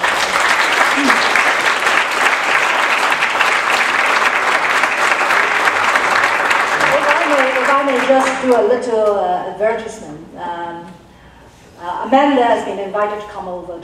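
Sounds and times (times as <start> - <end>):
audience applause: 0.0 - 8.5
speech: 8.4 - 10.3, 12.1 - 13.8.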